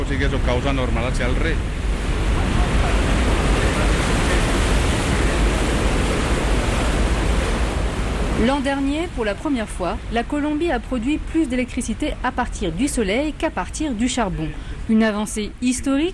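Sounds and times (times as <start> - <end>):
water rushing into hydroelectric outlet basin: 0.0 - 12.2
speech: 0.1 - 2.4, 8.4 - 16.1.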